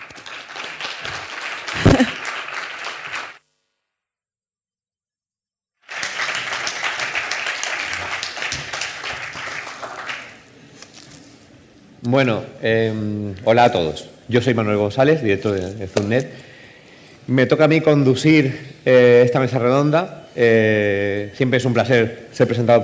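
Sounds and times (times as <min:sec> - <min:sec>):
audience applause: 0:00.0 - 0:03.4, 0:05.8 - 0:10.5
speech: 0:12.1 - 0:16.5, 0:17.3 - 0:22.8.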